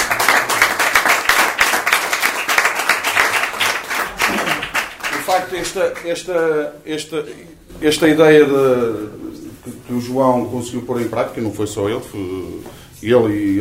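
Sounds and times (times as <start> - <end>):
audience clapping: 0.0 - 6.4
speech: 5.4 - 9.2, 9.9 - 13.5.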